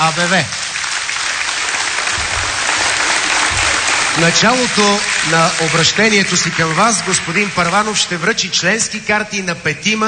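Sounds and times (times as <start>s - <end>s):
large audience applause for a speaker: 0.0s - 8.4s
speech: 0.1s - 0.7s, 4.2s - 10.0s.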